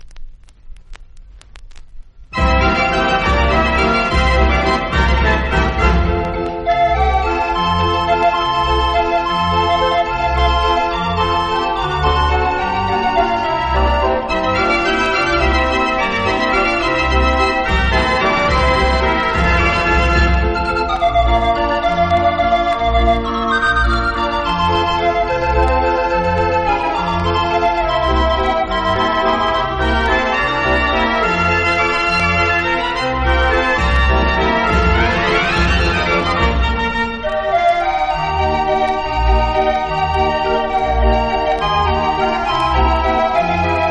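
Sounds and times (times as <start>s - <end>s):
Dutch street barrel organ playing: 2.4s - 43.8s.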